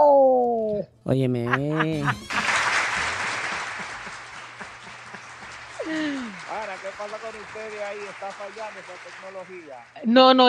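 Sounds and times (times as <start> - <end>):
speech: 1.1 - 2.4, 6.9 - 10.4
laughter: 1.4 - 9.8
applause: 2.0 - 10.0.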